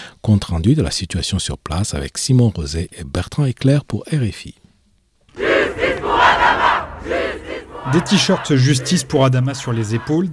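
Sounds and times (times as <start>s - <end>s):
speech: 0.2s - 4.6s, 7.9s - 10.3s
protest crowd chanting outside courthouse: 5.3s - 10.3s.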